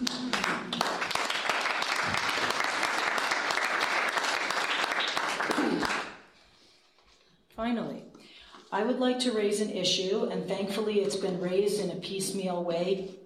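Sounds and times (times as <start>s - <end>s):
round of applause: 0.0s - 6.3s
speech: 7.6s - 8.1s, 8.7s - 13.2s.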